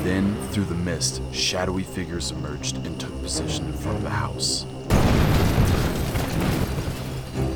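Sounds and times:
speech: 0:00.1 - 0:04.8
loud explosion: 0:04.9 - 0:07.3
crackling debris: 0:04.9 - 0:07.5.

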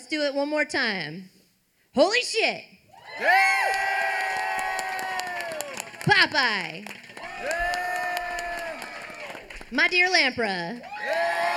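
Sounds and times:
speech: 0:00.1 - 0:01.4, 0:02.0 - 0:04.1, 0:06.1 - 0:07.7, 0:09.7 - 0:11.2
audience cheering: 0:02.9 - 0:06.1, 0:07.1 - 0:09.7, 0:10.8 - 0:11.5
audience applause: 0:03.2 - 0:09.9, 0:10.8 - 0:11.5.

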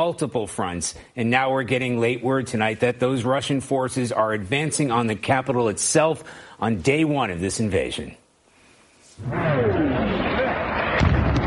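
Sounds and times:
speech: 0:00.0 - 0:08.2, 0:09.2 - 0:09.8
heavy rumbling artillery fire: 0:09.2 - 0:11.4
loud booming blast: 0:09.2 - 0:11.4.

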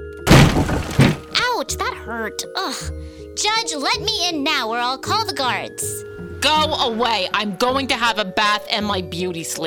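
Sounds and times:
door being broken down: 0:00.3 - 0:01.5
speech: 0:00.6 - 0:09.6.

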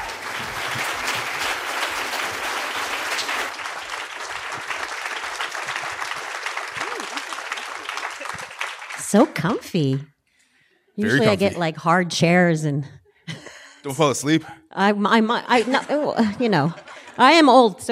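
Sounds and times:
live audience applauding: 0:00.0 - 0:09.6
scattered cheers: 0:06.7 - 0:07.4
laughter: 0:06.8 - 0:08.8, 0:11.0 - 0:11.6, 0:15.4 - 0:17.4
speech: 0:09.1 - 0:10.1, 0:11.0 - 0:13.0, 0:13.8 - 0:17.9.

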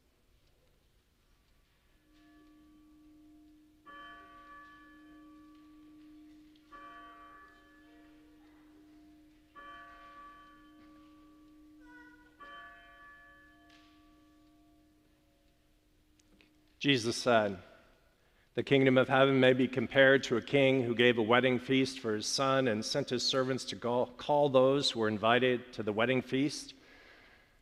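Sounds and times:
Mercy Bell church bell tolling: 0:01.7 - 0:27.0
speech: 0:16.8 - 0:17.7, 0:18.6 - 0:26.8.

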